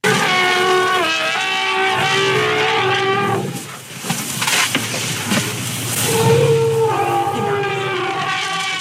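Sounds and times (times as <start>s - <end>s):
elephant herd trumpeting and roaring greeting calls: 0.0s - 3.8s, 5.9s - 8.7s
elephant herd low rumbles: 0.0s - 8.7s.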